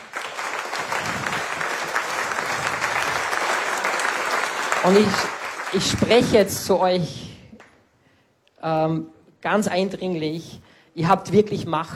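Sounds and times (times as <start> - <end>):
crowd clapping: 0.0 - 6.7
speech: 4.8 - 7.2, 8.6 - 11.9.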